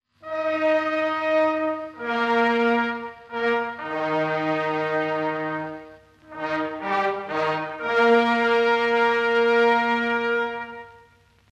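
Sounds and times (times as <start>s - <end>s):
fanfare: 0.1s - 11.4s.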